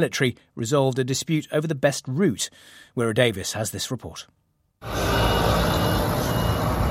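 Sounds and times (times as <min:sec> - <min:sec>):
speech: 0:00.0 - 0:05.4
heavy trucks hauling sacks of flour rolling into Kerem Shalom border crossing: 0:04.8 - 0:06.8
truck reversing beeps: 0:04.8 - 0:06.8.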